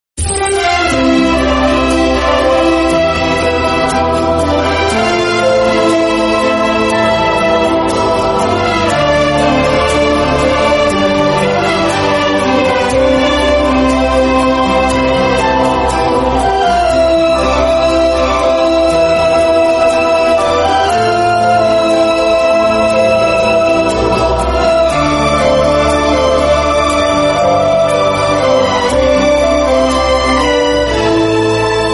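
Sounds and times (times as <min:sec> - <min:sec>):
instrumental song: 0:00.2 - 0:31.9.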